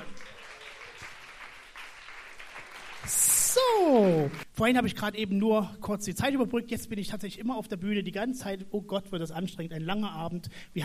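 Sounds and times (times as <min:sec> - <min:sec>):
audience applause: 0:00.0 - 0:04.4
speech: 0:03.1 - 0:10.8.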